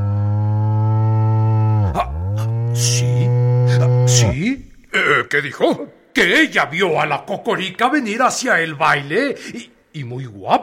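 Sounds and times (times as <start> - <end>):
cow mooing: 0.0 - 4.4
speech: 5.3 - 10.6.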